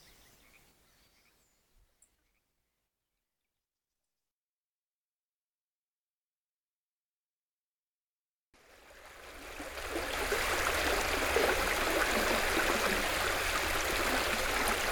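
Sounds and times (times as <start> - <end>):
birds: 0.0 - 2.5
water: 8.6 - 14.9.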